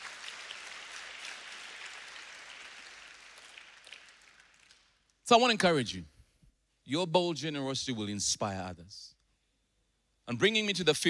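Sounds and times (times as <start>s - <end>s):
crowd clapping: 0.0s - 5.2s
speech: 5.3s - 6.1s, 6.9s - 9.2s, 10.3s - 11.0s.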